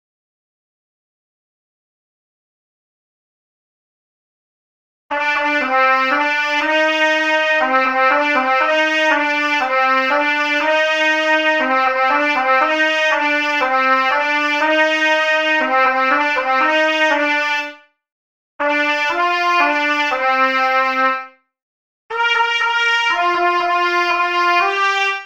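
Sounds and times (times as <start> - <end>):
trumpet: 5.1 - 17.8, 18.6 - 21.4, 22.1 - 25.2.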